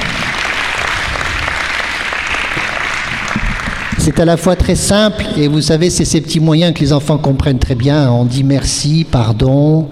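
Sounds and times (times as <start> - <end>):
applause: 0.0 - 4.7
speech: 4.0 - 9.9.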